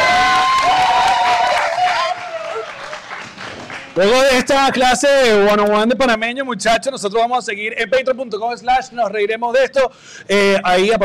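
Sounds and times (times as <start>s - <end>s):
audience applause: 0.0s - 4.9s
speech: 4.0s - 11.0s.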